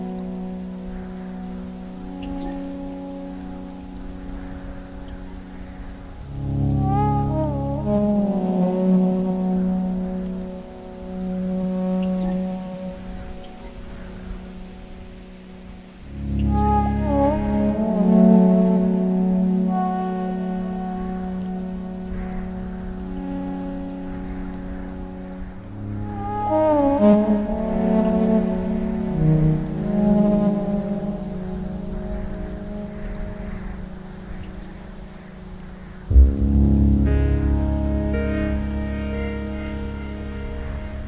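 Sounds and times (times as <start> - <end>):
soundtrack ambience: 0.0 - 41.0.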